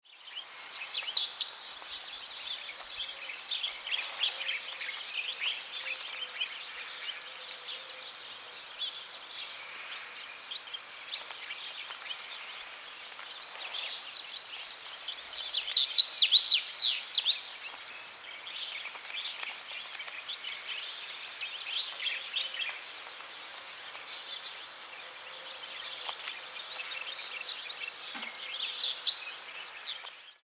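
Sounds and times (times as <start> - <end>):
birds on a terrace: 0.0 - 30.4.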